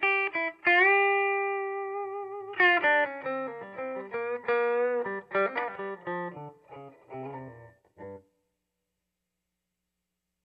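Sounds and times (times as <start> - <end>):
335 solo: 0.0 - 8.3.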